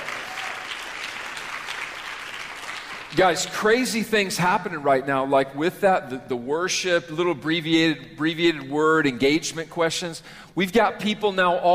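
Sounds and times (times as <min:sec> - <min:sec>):
hand clapping applause: 0:00.0 - 0:03.7
speech: 0:03.1 - 0:11.7.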